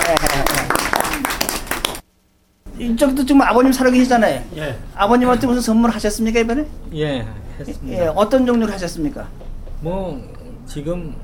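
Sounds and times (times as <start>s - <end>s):
small audience clapping at a studio interview: 0.0s - 2.0s
speech: 2.8s - 11.2s.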